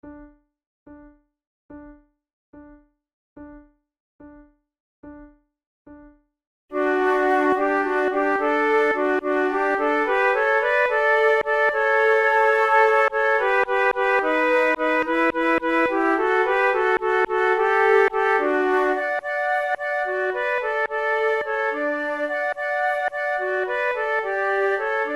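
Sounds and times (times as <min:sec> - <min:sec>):
flute trio: 0:06.8 - 0:25.1.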